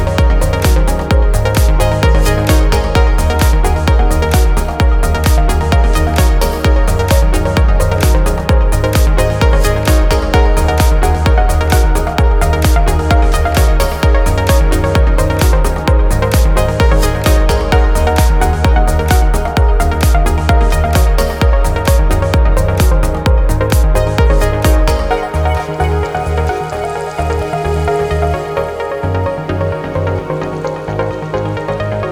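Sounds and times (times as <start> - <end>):
saw pluck trance theme: 0.0 - 32.1.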